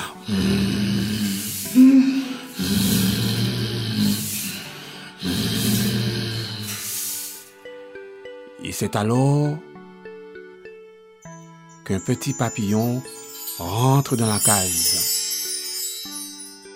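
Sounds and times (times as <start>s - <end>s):
snoring: 0.0s - 7.5s
speech: 0.3s - 0.8s, 8.8s - 9.7s, 11.9s - 15.1s.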